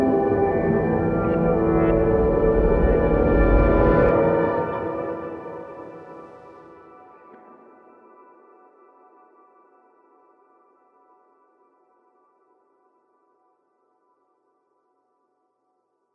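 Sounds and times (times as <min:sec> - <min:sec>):
atmospheric ambience: 0:00.0 - 0:09.0.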